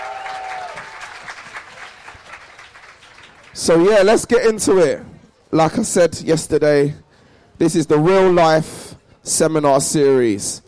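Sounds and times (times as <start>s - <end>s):
audience at a youth seminar applauding: 0.0s - 3.8s
speech: 3.6s - 7.0s, 7.6s - 10.6s.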